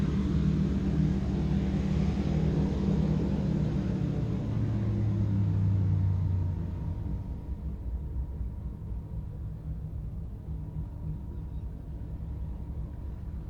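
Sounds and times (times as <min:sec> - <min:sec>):
fighter-bomber propeller aircraft engine during preflight: 0:00.0 - 0:13.4.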